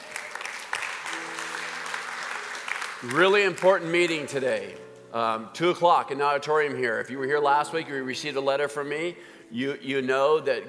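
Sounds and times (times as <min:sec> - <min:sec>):
congregation applauding during a church service: 0:00.0 - 0:05.1
speech: 0:03.0 - 0:10.6.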